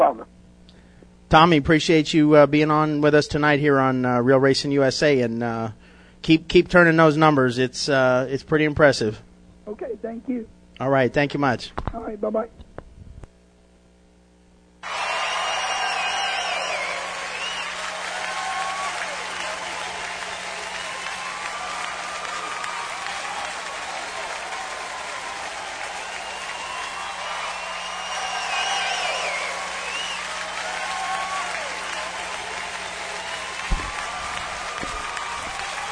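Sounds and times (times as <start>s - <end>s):
speech: 1.3s - 12.6s
applause: 14.8s - 35.9s.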